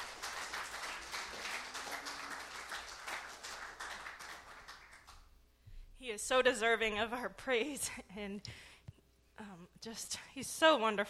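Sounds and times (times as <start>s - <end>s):
audience clapping: 0.0s - 5.3s
speech: 6.1s - 8.7s, 9.8s - 11.0s.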